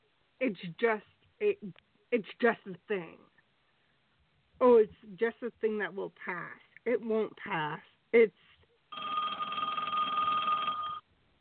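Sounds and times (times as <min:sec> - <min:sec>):
speech: 0:00.4 - 0:03.3, 0:04.6 - 0:08.5
telephone ringing: 0:08.9 - 0:11.1.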